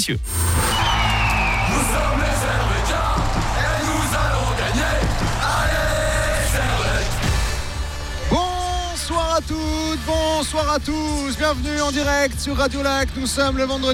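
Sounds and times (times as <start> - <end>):
speech: 0.0 - 0.7, 1.7 - 2.5, 9.4 - 13.9
crowd yelling and cheering in the BCF Arena before a live event: 0.3 - 10.7
scattered shouts and whoops: 0.6 - 7.3.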